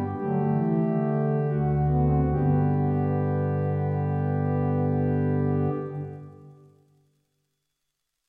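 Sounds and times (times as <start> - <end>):
pipe organ principals large and small diapasons playing scales: 0.0 - 6.5.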